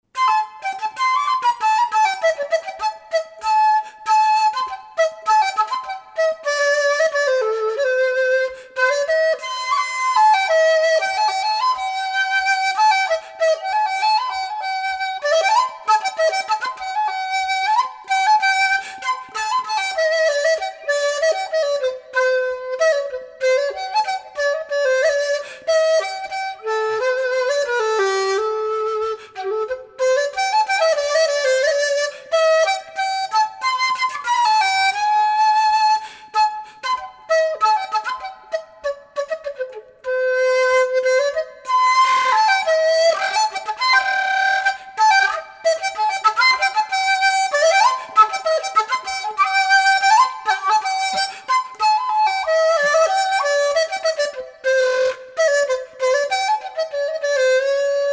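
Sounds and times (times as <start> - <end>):
chinese melody: 0.0 - 58.1.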